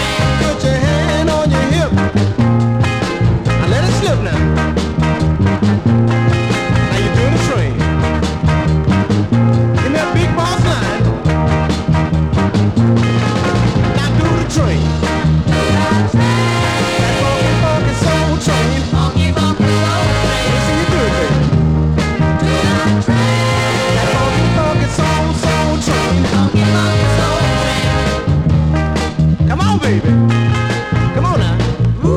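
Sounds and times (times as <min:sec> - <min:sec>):
funk soul music: 0:00.0 - 0:32.1.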